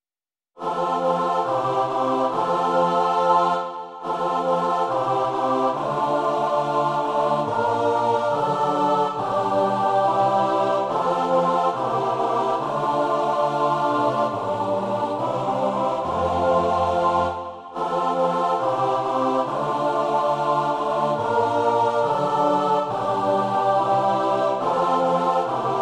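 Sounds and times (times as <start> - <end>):
choir singing: 0.6 - 25.7.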